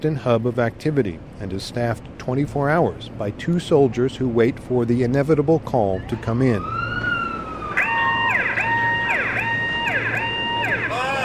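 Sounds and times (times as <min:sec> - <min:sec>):
speech: 0:00.0 - 0:07.1
alarm in military command center: 0:07.8 - 0:11.2.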